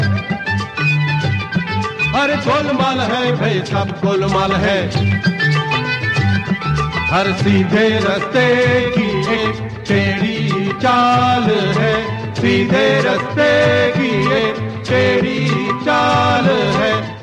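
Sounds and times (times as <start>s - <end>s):
old song ringtone: 0.1s - 17.2s.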